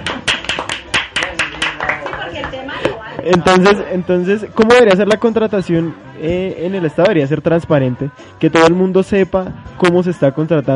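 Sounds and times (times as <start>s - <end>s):
audience applause: 0.0s - 2.6s
speech: 3.2s - 10.7s.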